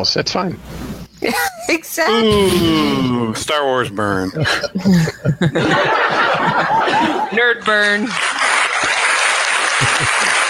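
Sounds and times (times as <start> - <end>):
speech: 0.0 - 8.6
laughter: 1.2 - 10.4
loud burst of applause from a crowd: 5.5 - 10.4.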